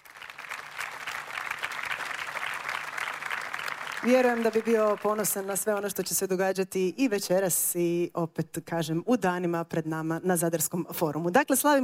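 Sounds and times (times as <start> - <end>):
audience clapping at a festival event in Zadar: 0.0 - 6.0
speech: 4.0 - 11.8.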